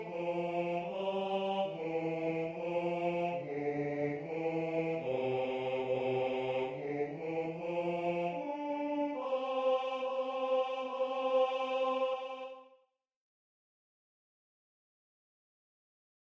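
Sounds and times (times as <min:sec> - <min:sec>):
tenor singing: 0:00.0 - 0:12.7.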